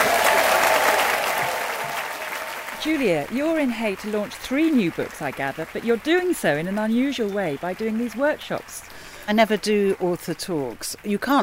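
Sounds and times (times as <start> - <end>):
audience applauding at the Hay Festival: 0.0 - 8.9
speech: 2.8 - 11.4.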